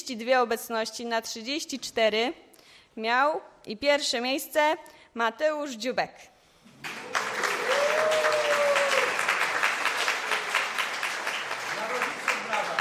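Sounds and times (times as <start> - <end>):
speech: 0.0 - 7.1
audience applause: 6.7 - 12.7.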